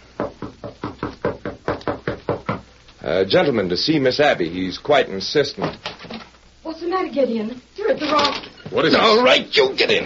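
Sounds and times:
knuckles knocking on a door: 0.2 - 2.7
speech: 3.1 - 5.9, 7.1 - 10.0.

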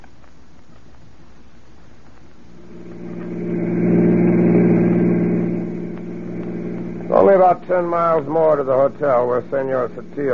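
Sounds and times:
car engine driving off: 2.5 - 10.3
speech: 7.4 - 10.3.

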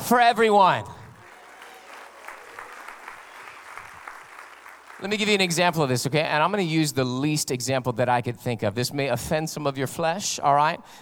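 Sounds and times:
speech: 0.1 - 1.0, 5.0 - 11.0
audience applauding: 0.9 - 6.3.

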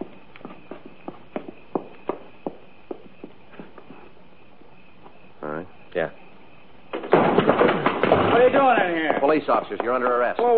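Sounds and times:
footsteps walking toward a door: 0.0 - 4.2, 7.0 - 10.5
low hiss: 0.0 - 10.5
speech: 9.4 - 10.5.

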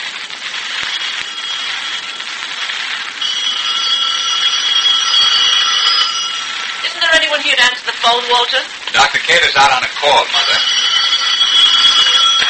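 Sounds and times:
telephone ringing: 0.9 - 8.5, 10.1 - 12.4.

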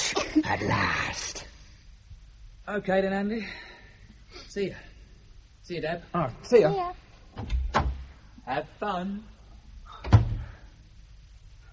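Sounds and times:
speech: 0.4 - 1.4, 2.7 - 3.7, 4.5 - 4.9, 5.6 - 7.7, 8.5 - 9.3
door closing: 10.0 - 10.6.

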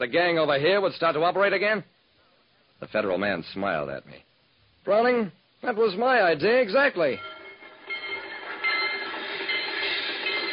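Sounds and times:
speech: 0.0 - 2.0, 2.8 - 7.4
riding in a moving freight train car: 7.2 - 10.5.

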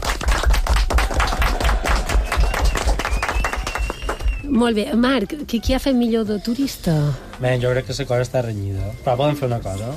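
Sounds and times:
audience applause: 0.0 - 4.4
speech: 4.6 - 9.9.

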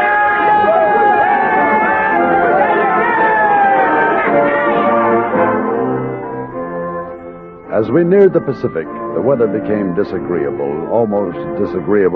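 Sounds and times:
men cheering and shouting: 0.0 - 6.4
speech: 7.8 - 12.1.

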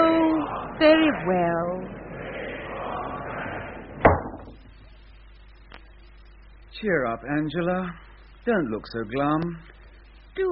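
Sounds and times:
outdoor murmur: 0.0 - 5.0
speech: 1.1 - 2.0, 6.8 - 9.7.

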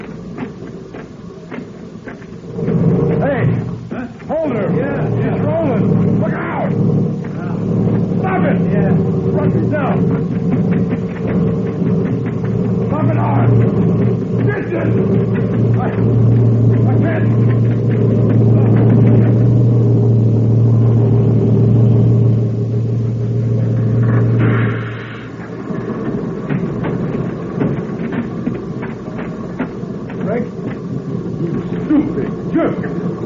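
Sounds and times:
rumbling and clatter: 0.0 - 33.2
truck engine roaring past: 0.0 - 33.2
voices: 0.0 - 33.2.

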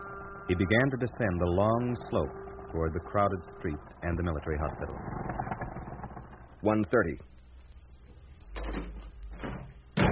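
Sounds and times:
speech: 0.5 - 5.2, 6.6 - 7.3
door slamming shut: 8.6 - 10.1.

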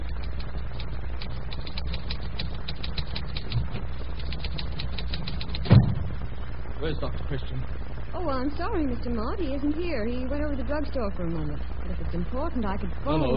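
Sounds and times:
typing on a typewriter: 0.2 - 5.8
speech: 6.8 - 13.3.

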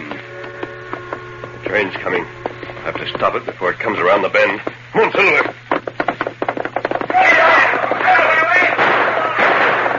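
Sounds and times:
speech: 1.7 - 5.6
gunshots from outlaws firing bullets: 7.2 - 9.9.

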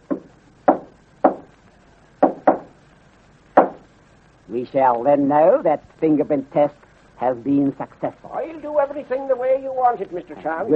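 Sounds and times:
knocking on a wooden door: 0.1 - 1.4, 2.2 - 2.7
speech: 4.5 - 10.7.

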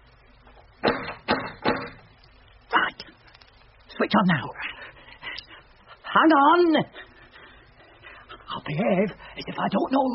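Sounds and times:
quiet hiss: 0.0 - 10.1
knocking on a door: 0.8 - 2.0
speech: 4.0 - 4.7, 6.1 - 7.0, 8.7 - 10.1.

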